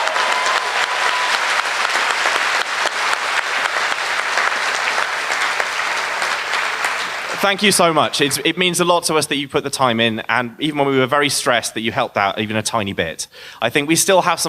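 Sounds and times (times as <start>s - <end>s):
audience applause: 0.0s - 8.9s
speech: 7.4s - 14.4s.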